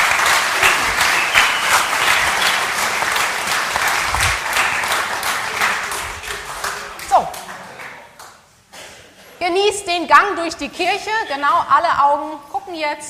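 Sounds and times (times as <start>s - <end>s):
church audience applause: 0.0s - 8.3s
speech: 9.5s - 13.0s.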